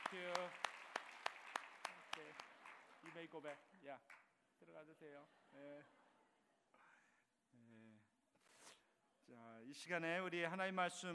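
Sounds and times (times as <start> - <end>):
applause: 0.0 - 4.3
speech: 0.1 - 0.7, 2.2 - 6.0, 7.5 - 8.1, 9.3 - 11.1.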